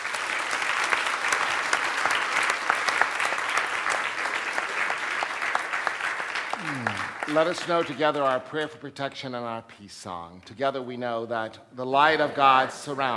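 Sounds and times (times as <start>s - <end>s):
audience applauding: 0.0s - 8.7s
speech: 7.3s - 13.1s.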